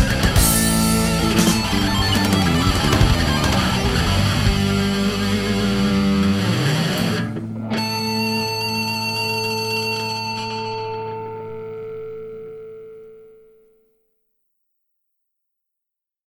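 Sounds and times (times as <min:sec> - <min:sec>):
karaoke singing: 0:00.0 - 0:11.8.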